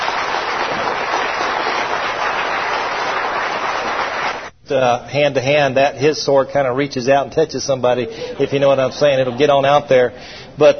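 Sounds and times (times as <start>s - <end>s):
audience hand clapping: 0.0s - 4.5s
speech: 4.7s - 10.7s.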